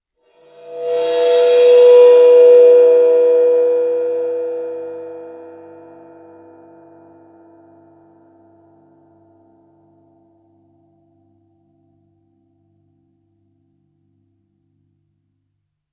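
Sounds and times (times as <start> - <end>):
bowed suspended cymbal: 0.5 - 6.3.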